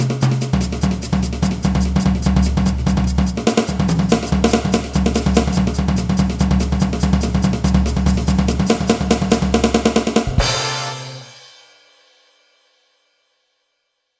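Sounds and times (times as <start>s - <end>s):
jazz music: 0.8s - 11.6s.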